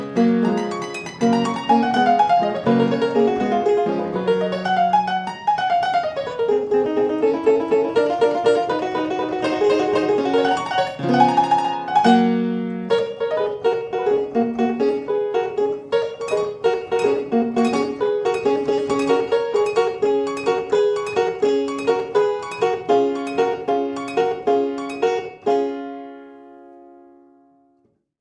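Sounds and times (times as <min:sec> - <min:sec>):
square piano fantasia: 0:00.0 - 0:27.8.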